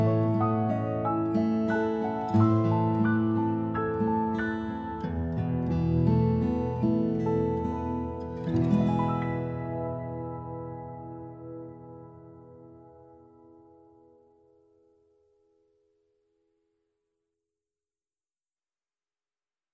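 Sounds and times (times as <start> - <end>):
piano: 0.0 - 14.4
guitar: 0.0 - 15.0.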